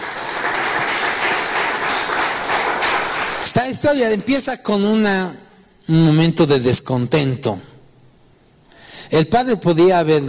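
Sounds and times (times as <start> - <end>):
audience applause: 0.0 - 3.6
speech: 3.6 - 7.7, 9.1 - 10.2.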